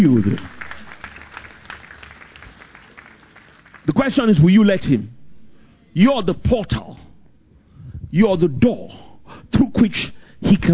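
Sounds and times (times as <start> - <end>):
speech: 0.0 - 0.6, 3.9 - 5.2, 6.0 - 7.1, 8.1 - 10.7
church congregation clapping during a sermon: 0.0 - 4.4.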